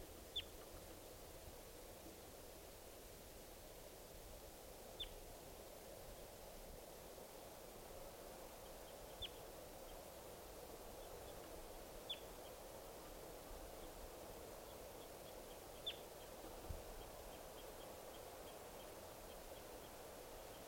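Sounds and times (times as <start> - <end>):
steady hiss: 0.0 - 20.6
faint high-pitched wild bird calls: 15.8 - 16.0.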